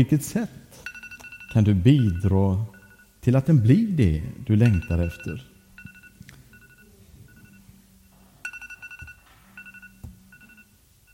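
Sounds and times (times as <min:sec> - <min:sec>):
speech: 0:00.0 - 0:00.9, 0:01.5 - 0:05.5
timer alarm ringing: 0:00.8 - 0:03.2, 0:04.6 - 0:11.1.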